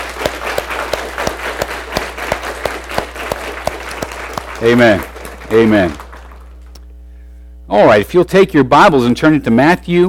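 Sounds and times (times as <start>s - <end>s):
audience applause: 0.0s - 6.5s
speech: 4.6s - 6.0s, 7.7s - 10.0s.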